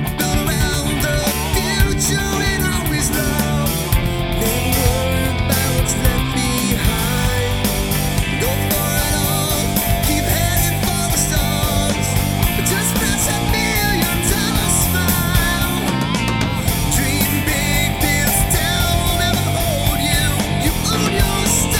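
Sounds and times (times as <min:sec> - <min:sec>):
karaoke full mix music: 0:00.0 - 0:21.7.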